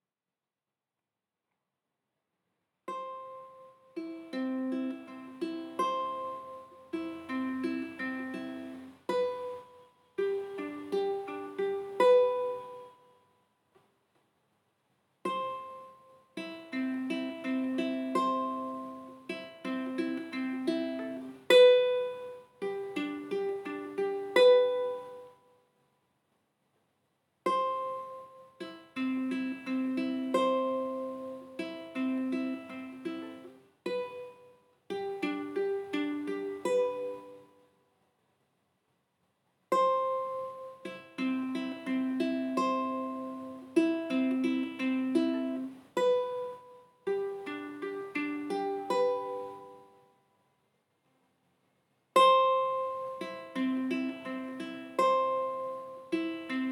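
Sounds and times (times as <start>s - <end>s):
instrumental lullaby: 2.9s - 13.4s, 15.3s - 25.6s, 27.5s - 37.8s, 39.8s - 50.3s, 52.2s - 56.7s.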